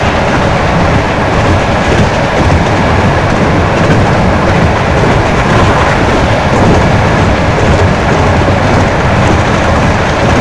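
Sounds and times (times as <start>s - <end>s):
train running: 0.0s - 10.3s.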